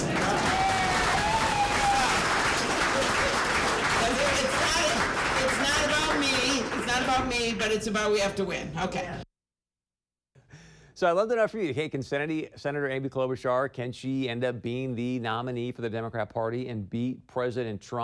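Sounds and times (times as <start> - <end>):
audience applause: 0.0 - 7.4
speech: 7.3 - 9.2, 11.0 - 18.0.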